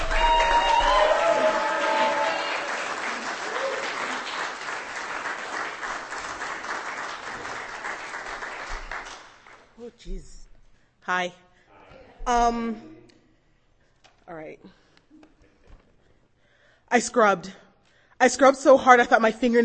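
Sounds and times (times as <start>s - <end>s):
audience applause at a live reading event: 0.0s - 9.7s
speech: 11.1s - 11.4s, 12.3s - 12.9s, 14.6s - 14.8s, 16.9s - 17.6s, 18.2s - 19.6s.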